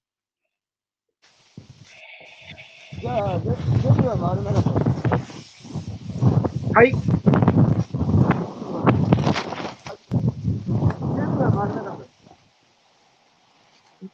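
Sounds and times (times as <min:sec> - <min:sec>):
strong wind buffeting a microphone in rumbling gusts: 0:01.6 - 0:12.4
voice: 0:02.8 - 0:05.4, 0:11.0 - 0:12.1
speech: 0:03.0 - 0:04.8, 0:06.8 - 0:07.7.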